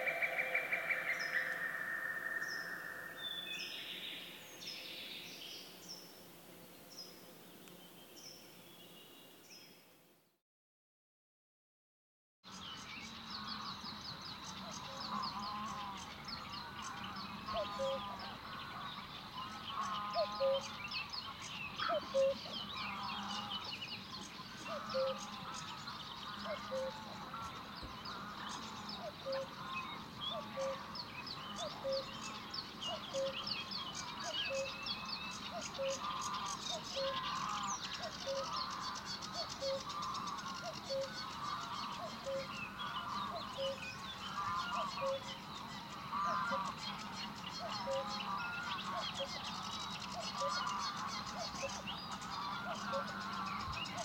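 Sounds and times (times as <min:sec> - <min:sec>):
cuckoo two-note calls: 0:00.0 - 0:04.0, 0:17.5 - 0:18.1, 0:20.2 - 0:20.7, 0:21.8 - 0:22.6, 0:24.6 - 0:25.3, 0:26.4 - 0:27.1, 0:29.0 - 0:29.7, 0:30.3 - 0:30.8, 0:31.6 - 0:32.1, 0:32.9 - 0:33.5, 0:34.2 - 0:34.8, 0:35.5 - 0:45.3, 0:47.6 - 0:49.5
chorus of songbirds chirping and twittering: 0:00.0 - 0:10.3, 0:12.5 - 0:54.0.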